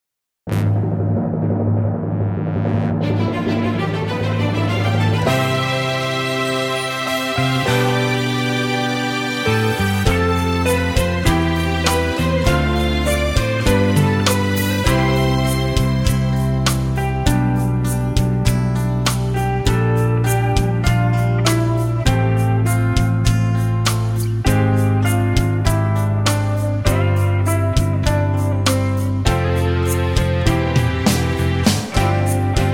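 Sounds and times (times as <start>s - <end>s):
music medley without backing vocals: 0.5s - 32.7s.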